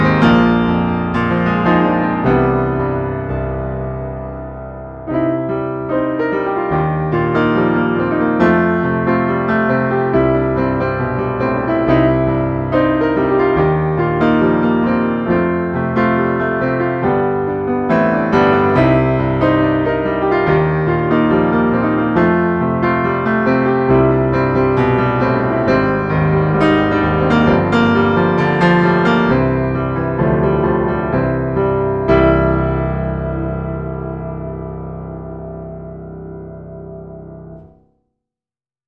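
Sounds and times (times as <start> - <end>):
dynamic jazz piano: 0.0 - 37.8.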